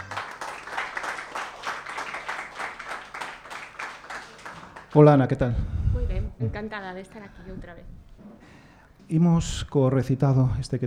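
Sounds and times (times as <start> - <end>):
audience applause: 0.0 - 5.2
speech: 4.9 - 5.8, 6.4 - 8.0, 9.1 - 10.8.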